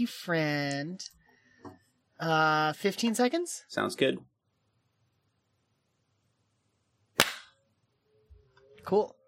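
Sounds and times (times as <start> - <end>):
speech: 0.0 - 4.3, 8.8 - 9.2
single hand clap: 7.2 - 7.5.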